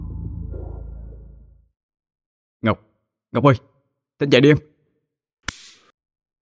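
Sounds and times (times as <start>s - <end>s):
speech: 2.6s - 4.7s
hard slap on the cheek of a nearly drowned woman: 5.4s - 5.9s.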